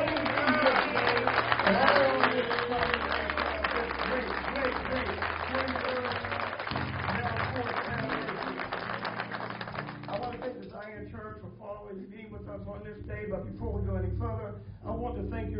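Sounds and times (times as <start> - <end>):
audience applauding: 0.0 - 10.9
speech: 12.7 - 15.5.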